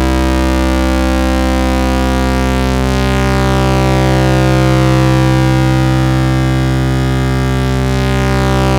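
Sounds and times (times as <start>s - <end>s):
low PWM synth pads: 0.0s - 8.7s.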